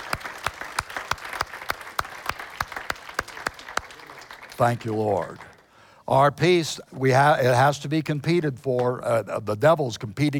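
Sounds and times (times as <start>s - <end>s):
audience clapping: 0.0s - 5.7s
speech: 4.6s - 5.5s, 6.1s - 10.3s.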